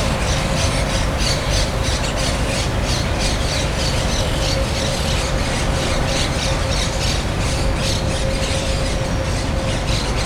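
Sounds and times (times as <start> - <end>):
chatty budgerigars: 0.0 - 10.1.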